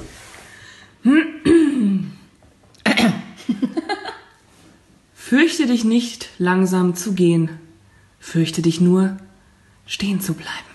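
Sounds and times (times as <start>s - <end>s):
person clearing throat: 1.1s - 3.4s
speech: 5.3s - 7.6s, 8.2s - 9.3s, 9.9s - 10.7s.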